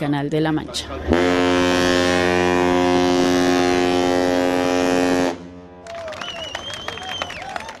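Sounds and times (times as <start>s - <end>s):
speech: 0.0s - 2.0s
tall ship horn blast departing the port of Rouen in the Armada 2019 parade: 1.0s - 5.8s
wavering high whistling tones: 6.2s - 7.6s.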